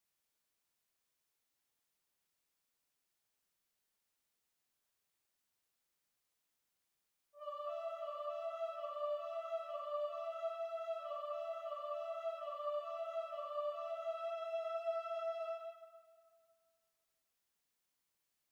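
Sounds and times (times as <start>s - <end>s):
soprano singing: 7.4s - 16.2s.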